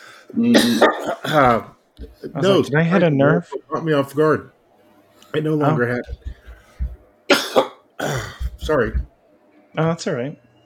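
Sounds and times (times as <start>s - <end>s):
speech: 0.3s - 4.6s, 5.3s - 6.4s, 8.0s - 9.1s, 9.8s - 10.4s
person coughing after swallowing wrong: 0.5s - 2.4s, 6.1s - 9.1s.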